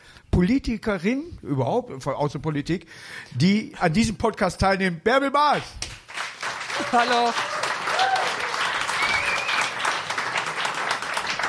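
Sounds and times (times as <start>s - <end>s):
speech: 0.4s - 5.9s, 6.8s - 7.5s
audience applauding: 5.9s - 11.4s
whistles and cheers: 6.7s - 9.9s.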